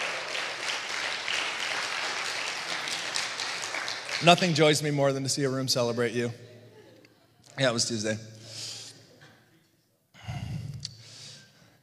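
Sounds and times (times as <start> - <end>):
audience applause: 0.0 - 5.2
speech: 4.2 - 6.5, 7.6 - 8.4.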